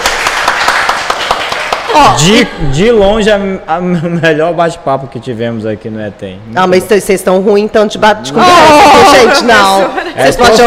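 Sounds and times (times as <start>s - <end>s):
audience applause: 0.0s - 2.4s
speech: 2.0s - 10.6s
laughter: 9.1s - 10.6s.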